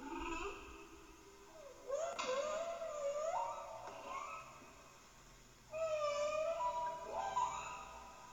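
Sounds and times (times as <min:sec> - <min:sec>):
humpback whale song: 0:00.0 - 0:04.9, 0:05.7 - 0:08.3.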